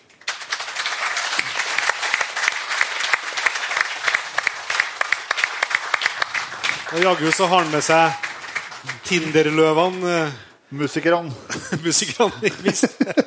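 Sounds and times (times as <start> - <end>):
audience applause: 0.0 - 10.6
speech: 6.9 - 8.2, 8.8 - 13.2
laughter: 11.3 - 13.2.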